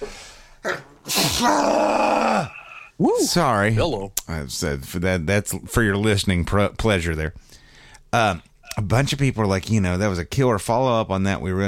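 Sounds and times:
person sneezing: 0.0s - 1.7s
speech: 1.4s - 2.2s, 3.0s - 11.6s.

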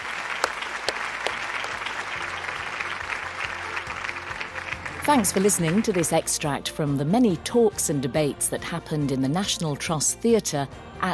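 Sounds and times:
audience applause for a debate panel at a countryside show theatre: 0.0s - 6.2s
speech: 5.1s - 11.1s.

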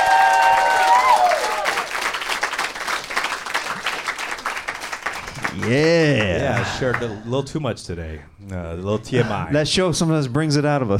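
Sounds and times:
audience applause for improv comedy team Dumbfounded: 0.0s - 7.2s
speech: 5.6s - 10.9s.

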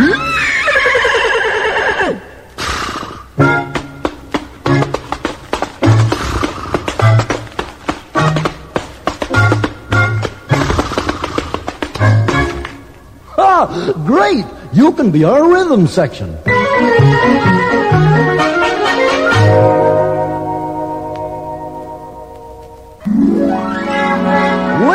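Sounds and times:
horse whinnying: 0.0s - 3.6s, 5.9s - 7.3s, 10.5s - 11.8s
horse hooves clopping a bouncy rhythm: 2.0s - 13.3s, 16.5s - 23.2s
light musical backing: 3.4s - 10.9s, 16.4s - 24.9s
speech: 14.4s - 17.9s.

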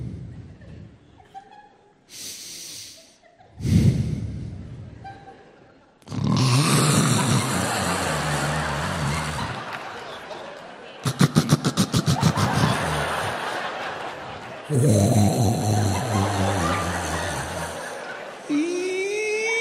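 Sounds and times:
laughter: 0.3s - 2.0s, 3.0s - 3.6s, 4.7s - 19.5s
person imitating loud snoring: 6.1s - 9.6s, 11.1s - 13.3s, 14.7s - 19.5s.

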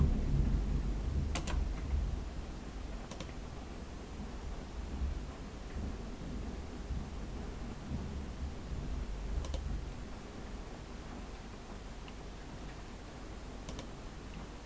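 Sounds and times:
thunder: 0.0s - 2.5s, 4.2s - 9.9s
rain: 0.0s - 14.6s
typing: 1.3s - 1.6s, 3.1s - 3.3s, 9.4s - 9.6s.

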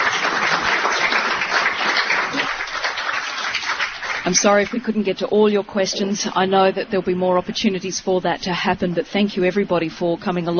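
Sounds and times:
studio audience applause: 0.0s - 4.8s
speech: 4.3s - 10.5s.

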